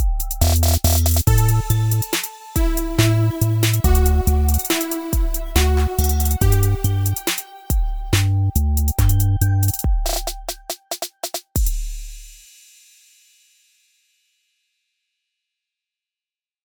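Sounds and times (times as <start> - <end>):
hip hop beat in G major at tempo 70: 0.0 - 12.4.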